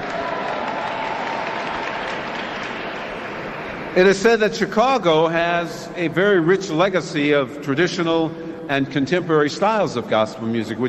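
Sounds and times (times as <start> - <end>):
applause from audience member: 0.0 - 3.0
speech: 3.9 - 10.8.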